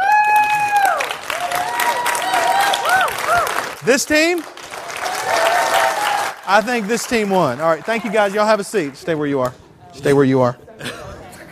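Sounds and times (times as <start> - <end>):
audience applause voting for a team: 0.0 - 9.1
speech: 3.9 - 4.6, 6.5 - 10.6.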